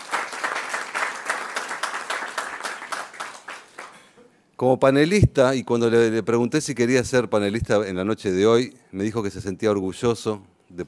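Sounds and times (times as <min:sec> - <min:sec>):
audience applause: 0:00.0 - 0:04.1
speech: 0:04.6 - 0:10.8.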